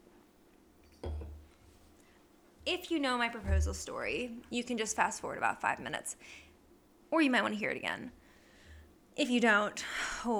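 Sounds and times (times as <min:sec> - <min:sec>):
glass knocking on a surface during a sip: 0:01.0 - 0:01.4
speech: 0:02.7 - 0:06.5, 0:07.1 - 0:08.2, 0:09.2 - 0:10.3.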